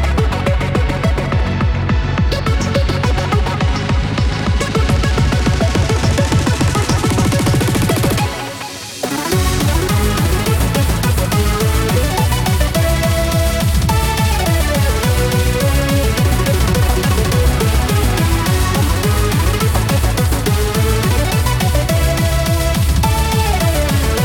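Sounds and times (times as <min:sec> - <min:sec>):
hard boss battle game music at 210 bpm: 0:00.2 - 0:24.2.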